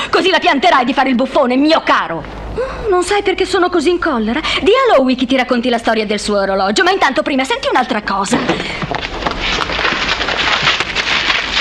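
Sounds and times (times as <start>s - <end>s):
speech: 0.2s - 8.9s
interview paper being torn up: 9.0s - 11.5s.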